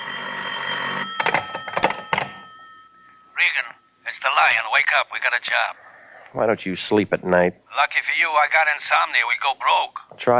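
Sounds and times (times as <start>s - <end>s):
telephone bell ringing: 0.0s - 4.5s
speech: 4.5s - 10.3s.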